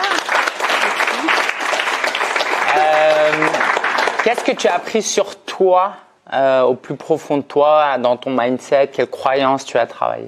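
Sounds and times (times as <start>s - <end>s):
applause: 0.0s - 4.9s
speech: 4.2s - 10.2s.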